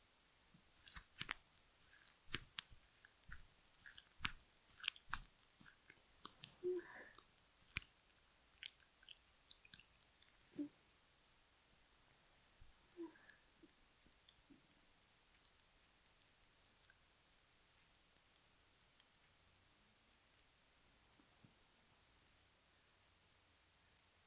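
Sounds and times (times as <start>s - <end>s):
wet squelching sounds: 0.8s - 10.4s.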